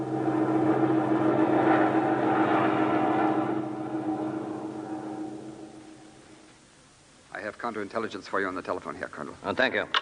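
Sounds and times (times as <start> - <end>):
propeller airplane engine droning in flight: 0.0 - 6.8
speech: 7.6 - 10.0.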